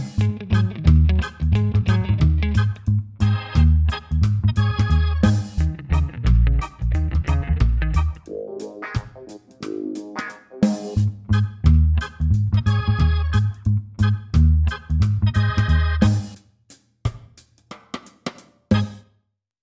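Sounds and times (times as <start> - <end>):
reggae music loop: 0.0 - 16.4, 18.7 - 19.0.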